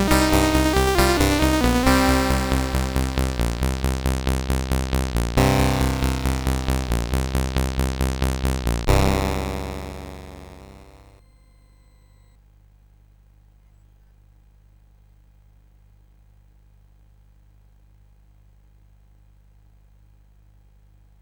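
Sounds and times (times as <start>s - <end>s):
chiptune music on a SID CSG 8580R5 chip: 0.0s - 11.2s.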